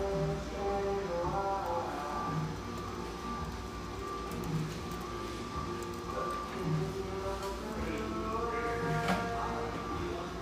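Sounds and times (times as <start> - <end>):
mellow radio music in a coffeehouse in Hazelwood, Northeast Portland: 0.0 - 10.4.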